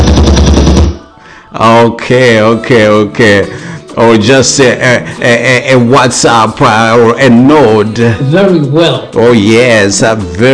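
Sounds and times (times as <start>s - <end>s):
machine-gun sound effect played as a mock gun salute: 0.0s - 1.0s
speech: 1.6s - 10.5s.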